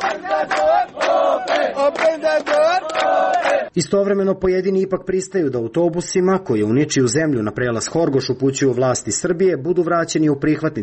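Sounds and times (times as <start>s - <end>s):
crowd of refugees chanting: 0.0s - 3.7s
speech: 3.8s - 10.8s.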